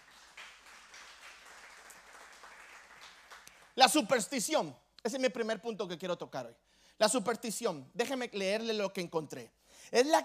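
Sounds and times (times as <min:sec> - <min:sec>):
audience applause: 0:00.0 - 0:03.8
speech: 0:03.8 - 0:10.2.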